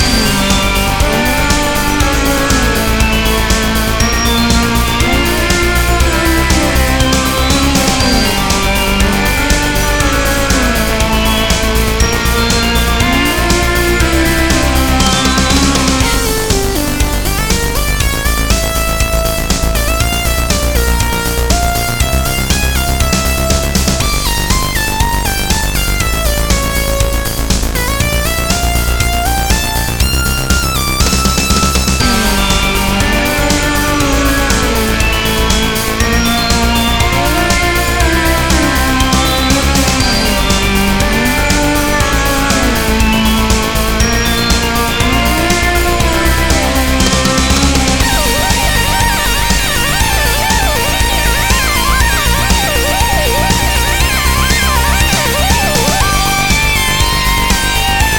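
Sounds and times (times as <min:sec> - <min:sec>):
underwater zombie soundtrack music loop: 0:00.0 - 0:58.1.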